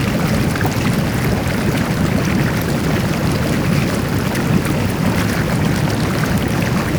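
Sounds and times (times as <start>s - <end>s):
fountain bubbling: 0.0s - 6.9s.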